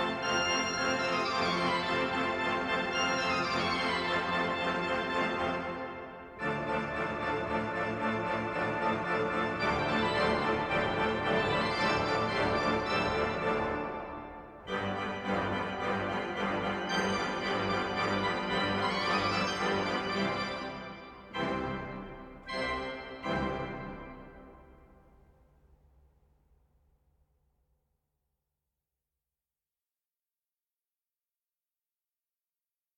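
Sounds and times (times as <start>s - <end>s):
organ improvisation for four hands: 0.0s - 24.7s.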